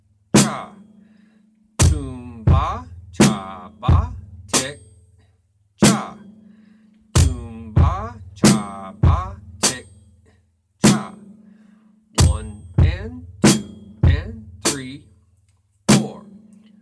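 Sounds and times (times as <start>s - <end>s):
drum beat: 0.4s - 0.8s, 1.8s - 5.0s, 5.8s - 6.3s, 7.2s - 10.1s, 10.8s - 11.3s, 12.2s - 15.0s, 15.9s - 16.3s.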